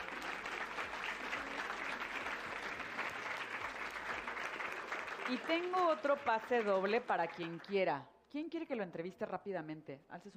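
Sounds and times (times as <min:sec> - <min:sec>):
audience applause: 0:00.0 - 0:07.7
speech: 0:05.3 - 0:10.3.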